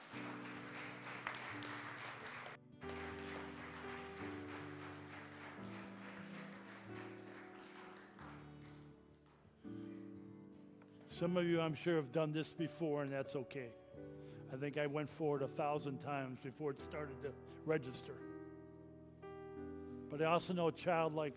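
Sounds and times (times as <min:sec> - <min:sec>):
audience applause: 0:00.0 - 0:09.4
speech: 0:11.2 - 0:18.3, 0:20.1 - 0:21.3.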